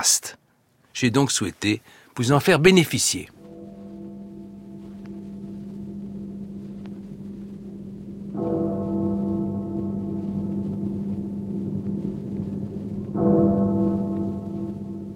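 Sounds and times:
speech: 0:01.0 - 0:03.4
bell striking midnight: 0:03.4 - 0:15.1.

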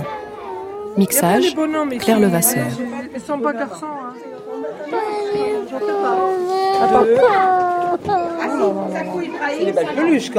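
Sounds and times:
child crying: 0:00.0 - 0:01.5, 0:04.5 - 0:09.1
speech: 0:01.0 - 0:10.3.

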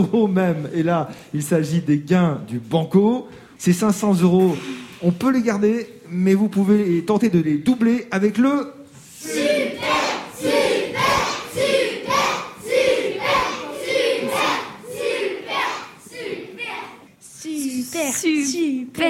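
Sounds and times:
speech: 0:00.0 - 0:10.8, 0:18.0 - 0:19.0
group of children cheering and chanting: 0:09.2 - 0:17.1.

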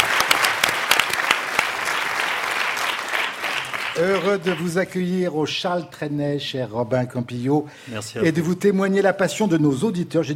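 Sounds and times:
audience applause: 0:00.0 - 0:04.8
speech: 0:04.0 - 0:10.3.

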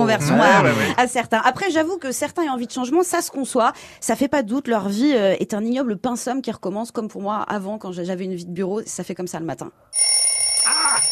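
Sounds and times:
speech: 0:00.1 - 0:10.1
alarm clock ringing: 0:10.0 - 0:11.0.

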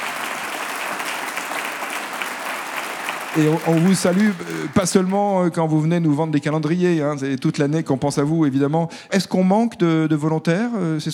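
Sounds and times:
audience applause: 0:00.0 - 0:05.8
speech: 0:03.4 - 0:11.1.

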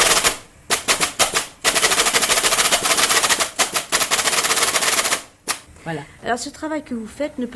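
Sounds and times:
keys struck on an antique typesetting keyboard: 0:00.0 - 0:05.3
speech: 0:05.8 - 0:07.5.

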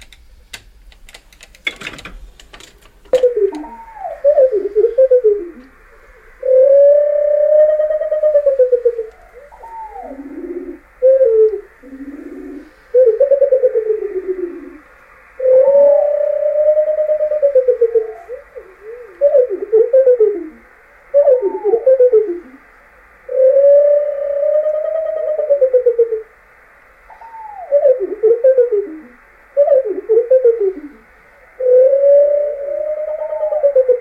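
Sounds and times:
sharp clicks: 0:00.0 - 0:03.7
slowed-down birdsong of a bird singing in flight: 0:03.0 - 0:34.0.

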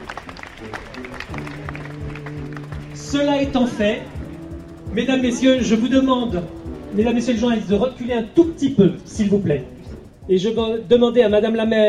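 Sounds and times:
crowd clapping: 0:00.0 - 0:03.1
murmuring voices: 0:00.0 - 0:10.2
low hum: 0:00.0 - 0:11.8
speech: 0:00.6 - 0:01.8, 0:03.0 - 0:04.2, 0:04.9 - 0:09.7, 0:10.3 - 0:11.8.

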